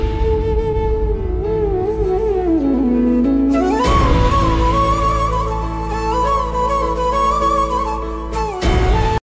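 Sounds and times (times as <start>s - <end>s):
instrumental flute ringtone: 0.2s - 9.2s.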